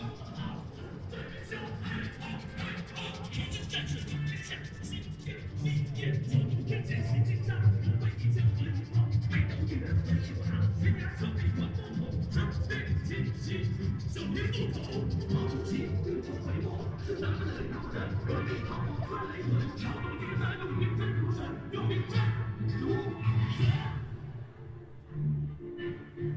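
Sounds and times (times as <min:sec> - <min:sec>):
crowd babble at Hongyadong in Chongqing: 0:00.0 - 0:26.3.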